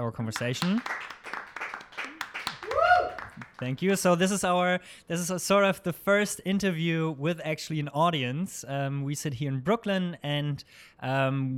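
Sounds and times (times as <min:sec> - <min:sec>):
speech: 0:00.0 - 0:01.2, 0:03.6 - 0:11.5
person clapping: 0:00.4 - 0:04.2.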